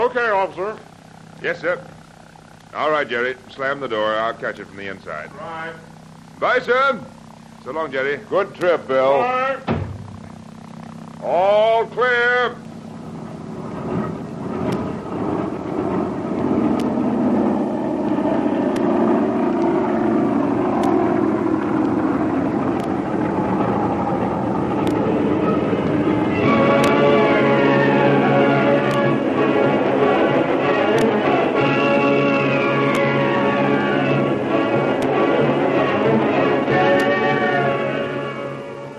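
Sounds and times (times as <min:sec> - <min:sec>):
speech: 0:00.0 - 0:02.0, 0:02.7 - 0:09.7, 0:11.2 - 0:12.6
big passenger airliner taking off from a concrete runway: 0:12.9 - 0:38.9.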